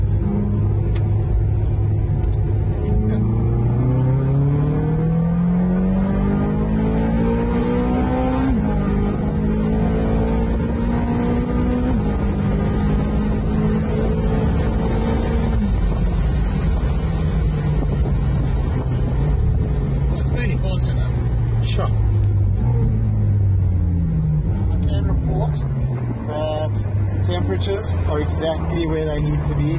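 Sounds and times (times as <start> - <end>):
open-top car accelerating hard out of a hairpin bend: 0.0 - 29.7
wind rush on an open-top car: 12.2 - 20.3.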